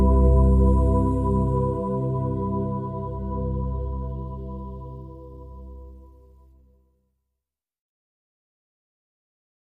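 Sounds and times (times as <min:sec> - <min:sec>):
space trance music: 0:00.0 - 0:06.5.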